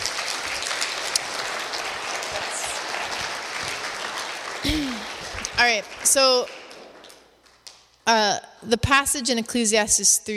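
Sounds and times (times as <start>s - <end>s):
crowd clapping: 0.0s - 8.0s
speech: 5.6s - 6.6s, 8.1s - 10.3s.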